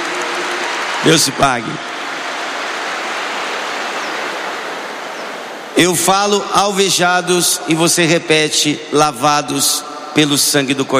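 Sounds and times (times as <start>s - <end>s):
audience applause: 0.0s - 5.7s
speech: 1.0s - 1.9s, 5.8s - 10.9s.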